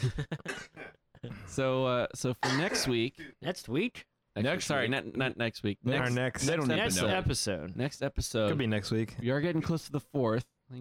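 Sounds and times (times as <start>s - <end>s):
speech: 0.0s - 0.5s, 1.5s - 10.8s
person coughing: 0.4s - 1.5s, 2.4s - 3.4s.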